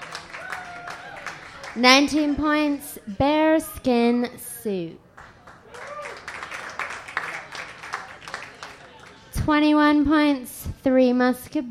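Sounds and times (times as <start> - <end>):
audience clapping: 0.0 - 2.6, 5.1 - 9.3
speech: 1.8 - 5.0, 9.5 - 11.6.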